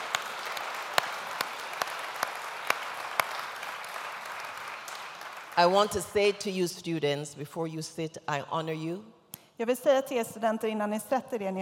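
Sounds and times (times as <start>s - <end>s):
audience applauding graduating students: 0.0s - 6.0s
speech: 5.6s - 11.6s.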